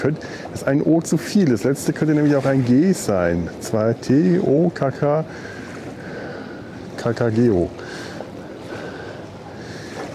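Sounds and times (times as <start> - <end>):
speech: 0.0 - 5.6, 7.0 - 8.0
waves lapping: 0.0 - 10.1.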